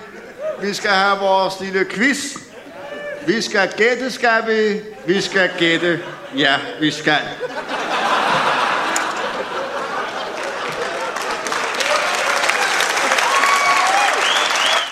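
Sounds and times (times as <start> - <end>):
laughter: 0.0 - 14.6
speech: 0.6 - 2.4, 3.2 - 7.8
audience applause: 8.1 - 14.9.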